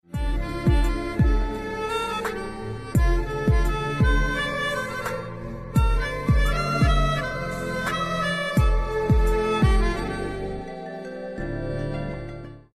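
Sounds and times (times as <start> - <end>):
instrumental background music: 0.0 - 12.7
heartbeat: 0.2 - 1.6, 3.0 - 4.4, 5.8 - 7.2, 8.6 - 10.0.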